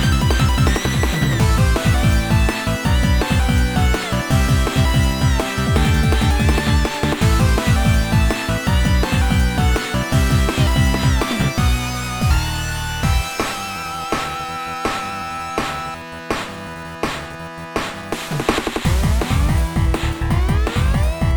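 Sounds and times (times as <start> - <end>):
chiptune game music remix: 0.0 - 21.3.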